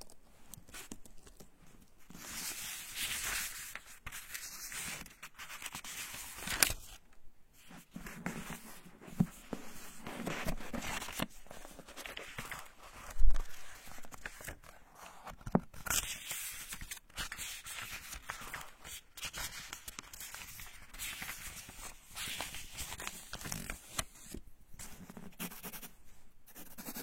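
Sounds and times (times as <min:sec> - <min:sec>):
pages turning: 0:00.4 - 0:25.8
pen writing: 0:26.5 - 0:27.0.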